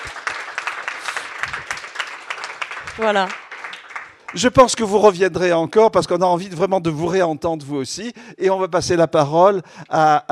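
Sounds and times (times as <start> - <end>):
audience clapping at a ceremony for a doctorate: 0.0 - 5.5
speech: 3.0 - 3.4, 4.3 - 10.3.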